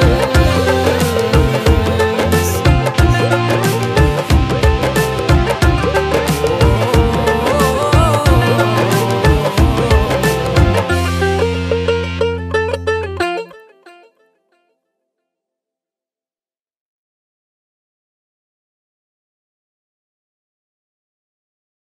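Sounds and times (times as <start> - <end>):
Christmas song: 0.0 - 13.8.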